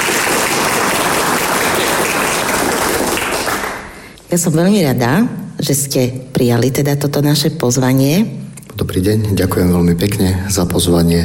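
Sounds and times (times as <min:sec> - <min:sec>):
audience applause: 0:00.0 - 0:04.0
speech: 0:04.3 - 0:11.2.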